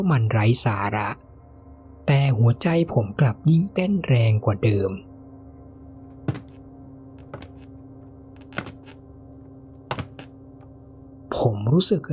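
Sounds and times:
speech: 0.0s - 1.3s, 2.1s - 5.1s, 11.4s - 12.1s
wooden stair creaking under footsteps: 6.2s - 6.6s, 7.2s - 7.7s, 8.4s - 9.0s, 9.9s - 10.3s.

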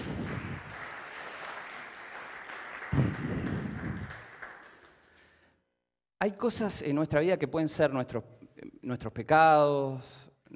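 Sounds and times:
audience applause: 0.0s - 5.2s
speech: 2.9s - 3.4s, 6.2s - 10.5s.

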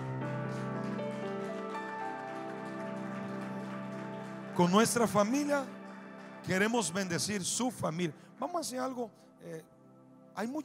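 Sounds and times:
audience applauding: 0.0s - 7.0s
speech: 4.6s - 5.8s, 6.4s - 9.7s, 10.4s - 10.6s.

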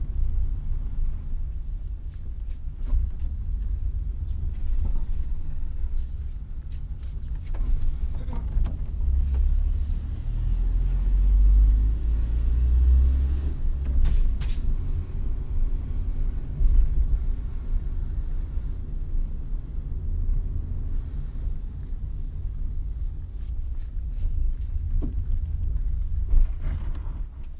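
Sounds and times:
car engine rumble driving to a farm stand: 0.0s - 27.5s.

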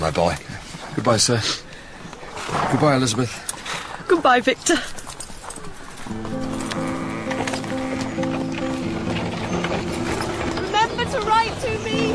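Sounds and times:
speech: 0.0s - 1.7s, 2.4s - 5.0s
horse hooves clip-clopping pulling a carriage: 2.0s - 12.1s
sustained musical score: 6.1s - 12.1s.

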